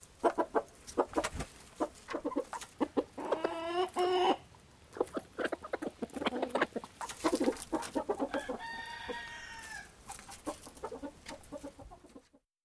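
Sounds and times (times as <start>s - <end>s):
chickens: 0.0s - 12.4s.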